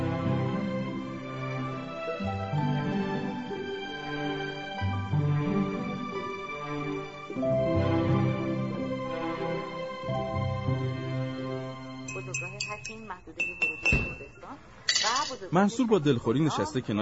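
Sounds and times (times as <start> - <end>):
sustained tonal music: 0.0 - 13.5
glass jam jar clinking as someone struggles to open its lid: 14.9 - 15.4
speech: 15.4 - 17.0.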